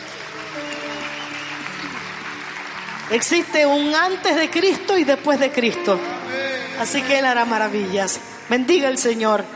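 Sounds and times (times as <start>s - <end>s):
audience applause: 0.0s - 5.4s
speech: 3.1s - 6.1s, 6.8s - 9.5s.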